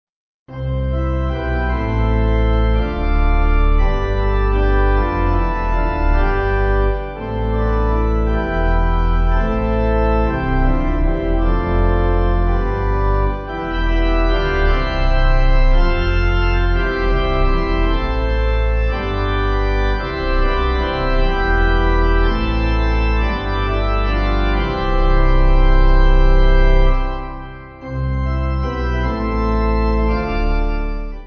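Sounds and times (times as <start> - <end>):
pipe organ: 0.5 - 31.2.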